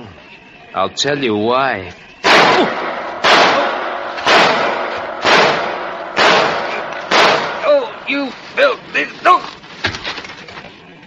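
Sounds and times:
speech: 0.7s - 2.9s, 8.2s - 9.6s
gunshots: 2.2s - 8.1s.

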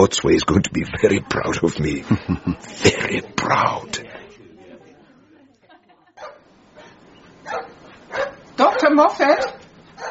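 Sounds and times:
speech: 0.0s - 4.1s, 8.8s - 9.6s
laughter: 1.8s - 3.5s, 4.5s - 6.4s
badly behaved dog barking: 6.2s - 10.0s.

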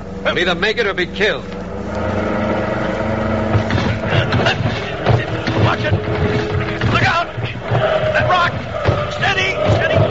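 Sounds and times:
car engine roaring down rough embankment: 0.0s - 10.0s
speech: 0.3s - 2.3s
vehicle bumps and rattling jolts across rough ground: 2.1s - 10.0s.

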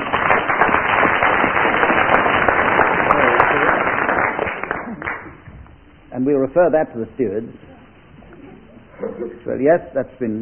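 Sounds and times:
audience applause: 0.0s - 5.4s
speech: 6.2s - 7.7s, 9.1s - 10.4s.

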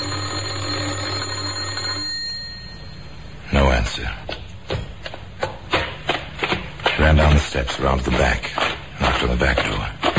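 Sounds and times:
loud electric doorbell ringing: 0.0s - 3.4s
speech: 3.8s - 4.3s, 7.0s - 10.0s.

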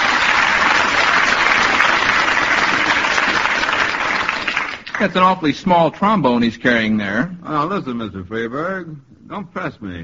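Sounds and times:
crowd applause: 0.0s - 5.3s
speech: 5.0s - 10.0s.

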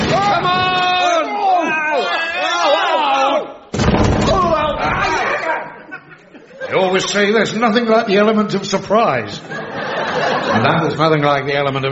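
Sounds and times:
people shouting: 0.0s - 5.8s
wooden trapdoor under the tail of a wooden horse kicked open: 3.7s - 5.3s
laughter: 4.9s - 7.8s, 9.2s - 11.2s
speech: 7.0s - 9.7s, 10.4s - 11.8s.

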